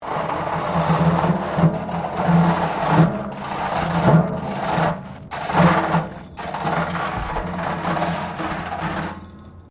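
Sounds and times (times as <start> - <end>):
metal bin scraping wire fence: 0.0 - 9.7.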